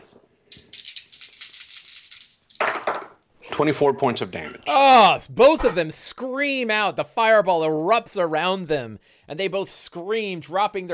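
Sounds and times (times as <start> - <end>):
dice rattling in a cupped hand or cup: 0.5 - 2.9
dice clattering as they land: 0.5 - 3.2
speech: 3.6 - 10.9.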